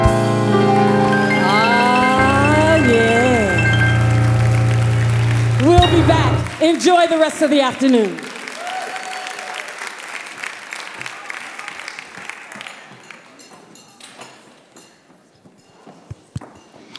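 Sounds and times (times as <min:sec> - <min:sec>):
audience applause after a performance: 0:00.0 - 0:13.4
speech: 0:06.7 - 0:08.2.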